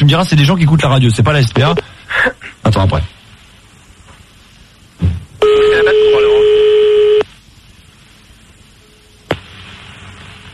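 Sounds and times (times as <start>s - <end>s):
speech: 0.1s - 2.0s, 2.8s - 3.2s
fax machine tone on a phone line: 5.4s - 7.3s.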